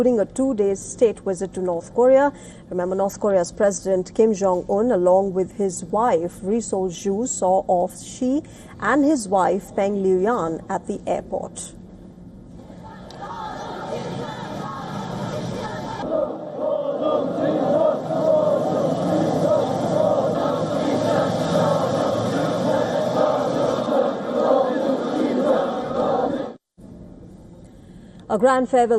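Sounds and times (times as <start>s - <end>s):
speech: 0.0s - 11.8s, 28.4s - 28.9s
crowd chanting slogans along street: 12.6s - 26.6s.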